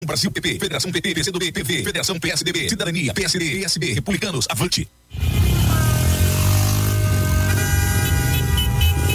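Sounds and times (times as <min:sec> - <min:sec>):
speech: 0:00.1 - 0:05.4
many car horns honking: 0:05.1 - 0:09.1.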